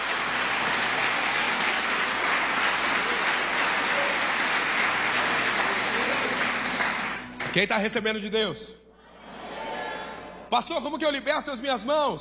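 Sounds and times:
audience applauding: 0.0s - 7.9s
speech: 7.6s - 8.8s, 10.5s - 12.1s.

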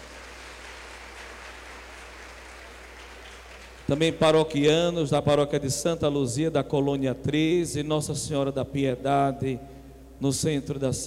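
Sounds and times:
round of applause: 0.0s - 4.6s
speech: 3.9s - 11.0s.

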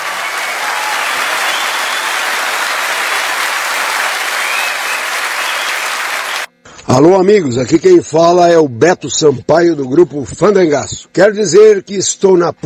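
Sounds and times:
audience applause: 0.0s - 6.5s
speech: 6.9s - 12.6s.

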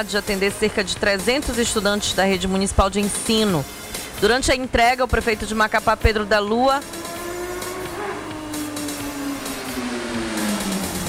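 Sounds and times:
speech: 0.0s - 7.1s
motorcycle without muffler passing: 5.8s - 11.0s.

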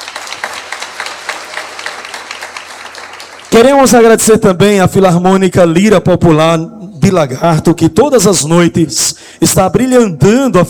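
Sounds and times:
round of applause: 0.0s - 3.8s
speech: 3.5s - 10.6s.

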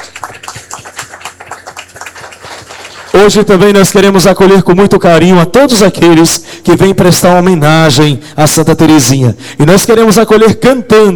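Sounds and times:
round of applause: 0.0s - 3.5s
speech: 3.2s - 11.1s.

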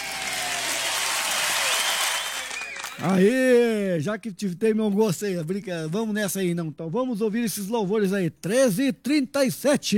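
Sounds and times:
applause: 0.0s - 3.2s
speech: 3.0s - 9.9s.

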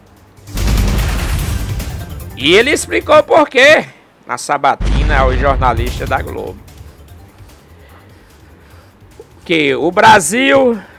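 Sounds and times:
atomic bomb explosion sound effect: 0.5s - 2.4s, 4.8s - 7.1s
speech: 2.4s - 6.7s, 9.5s - 10.9s.

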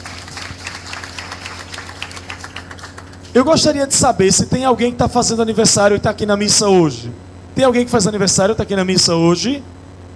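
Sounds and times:
audience applause: 0.0s - 3.8s
laughter: 0.0s - 5.0s
speech: 3.4s - 9.8s.

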